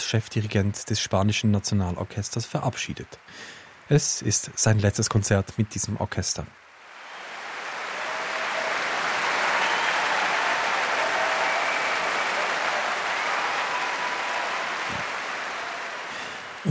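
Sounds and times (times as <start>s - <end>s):
speech: 0.1s - 6.6s
concert audience applause in London: 6.7s - 16.7s.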